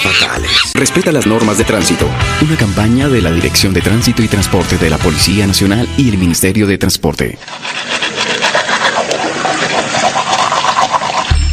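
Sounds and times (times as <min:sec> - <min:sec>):
speech: 0:00.8 - 0:08.3
water running from an open tap: 0:08.2 - 0:11.4.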